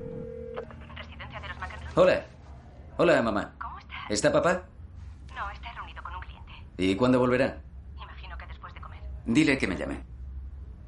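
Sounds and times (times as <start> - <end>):
faint phone line hiss: 0.0 - 0.7
telephone tone: 0.0 - 0.8
speech: 2.0 - 2.3, 3.0 - 4.7, 6.8 - 7.6, 9.3 - 10.1.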